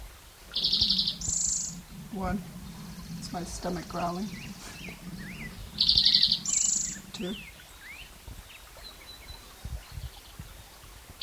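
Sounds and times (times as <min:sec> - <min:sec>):
spotted towhee song: 0:00.5 - 0:09.4
speech: 0:02.1 - 0:02.6, 0:03.3 - 0:05.9, 0:07.2 - 0:07.5.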